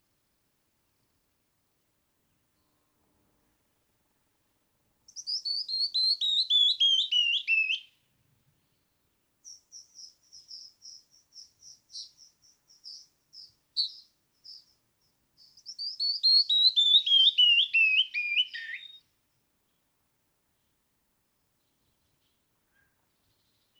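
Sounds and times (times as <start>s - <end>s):
canyon wren singing descending whistles: 5.1s - 7.8s, 9.4s - 14.8s, 15.4s - 19.0s.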